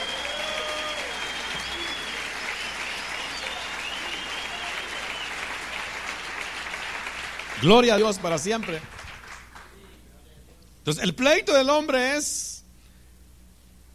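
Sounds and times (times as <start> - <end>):
audience applause: 0.0 - 9.9
speech: 7.6 - 9.0, 10.8 - 12.5.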